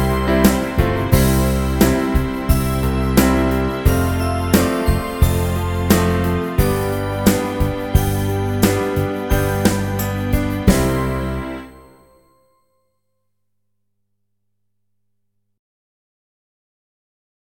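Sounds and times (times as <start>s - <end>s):
backing track: 0.0s - 12.2s.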